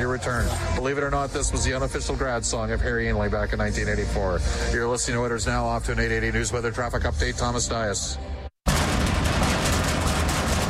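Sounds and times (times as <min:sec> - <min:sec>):
speech: 0:00.2 - 0:08.4
overhead door malfunctioning loudly: 0:08.7 - 0:10.6.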